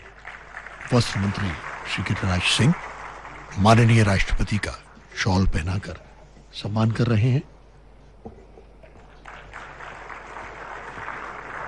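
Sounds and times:
audience applause at ceremony: 0:00.0 - 0:04.8, 0:09.0 - 0:11.6
speech: 0:00.9 - 0:02.9, 0:03.5 - 0:06.0, 0:06.6 - 0:07.5.

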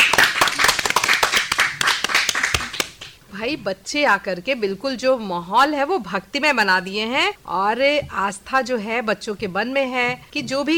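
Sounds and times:
crowd applause: 0:00.0 - 0:03.2
speech: 0:03.4 - 0:10.7.

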